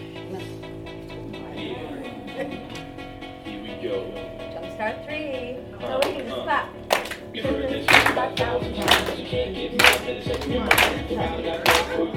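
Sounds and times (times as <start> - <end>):
people clapping along: 5.9 - 12.1.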